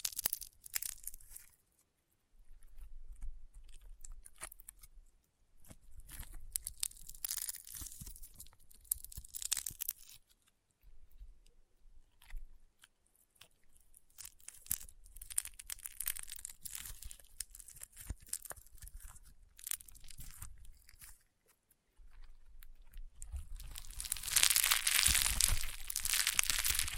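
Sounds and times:
crunchy popping slime being squeezed and pressed: 0:00.0 - 0:01.5, 0:06.0 - 0:10.2, 0:14.0 - 0:26.9.

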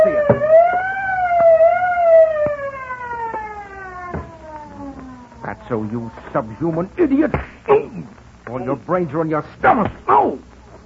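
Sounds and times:
truck's auto alarm blaring: 0:00.0 - 0:05.8
speech: 0:05.7 - 0:08.1, 0:08.7 - 0:10.5.

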